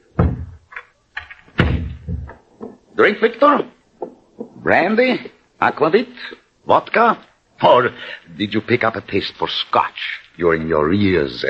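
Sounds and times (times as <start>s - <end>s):
heavy wooden doors shut in a chateau study: 0.2s - 0.6s, 1.4s - 2.8s
speech: 3.0s - 3.8s, 4.7s - 11.4s.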